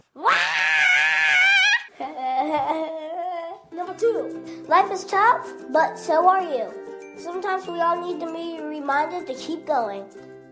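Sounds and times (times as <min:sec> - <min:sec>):
person screaming: 0:00.1 - 0:01.9
speech: 0:04.0 - 0:10.2.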